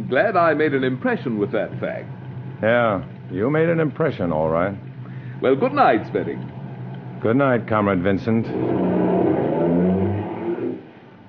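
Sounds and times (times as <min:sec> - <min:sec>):
speech: 0:00.1 - 0:06.6, 0:07.2 - 0:09.4
car engine revving and driving away: 0:07.1 - 0:11.0.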